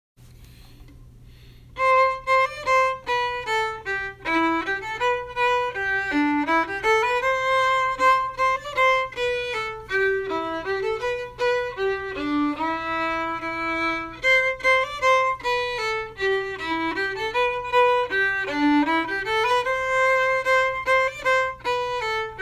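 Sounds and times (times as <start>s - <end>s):
harmony part: 1.7s - 22.4s.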